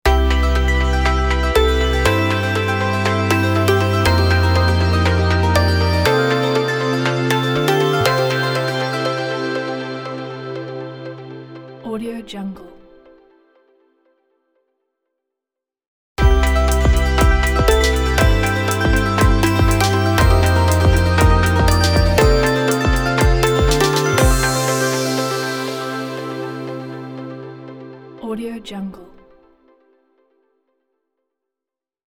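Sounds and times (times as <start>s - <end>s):
positive melodic logo jingle: 0.1s - 11.2s, 16.2s - 28.2s.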